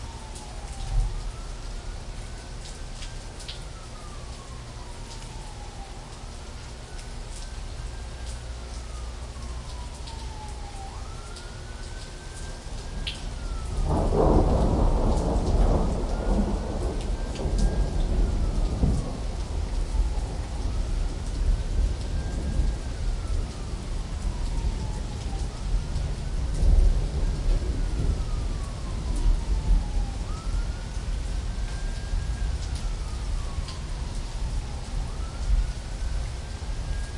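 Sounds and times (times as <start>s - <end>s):
thunderstorm in Phoenix Arizona: 12.9s - 37.1s.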